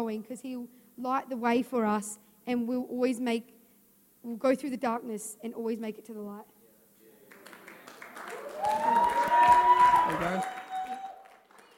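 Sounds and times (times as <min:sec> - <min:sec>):
speech: 0:00.0 - 0:03.6, 0:04.2 - 0:06.5, 0:10.1 - 0:10.5
audience clapping: 0:07.2 - 0:11.7.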